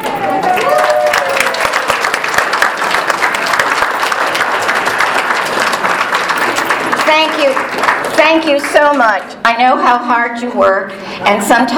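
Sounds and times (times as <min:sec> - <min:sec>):
audience clapping for board members: 0:00.0 - 0:09.0
speech: 0:08.3 - 0:11.7.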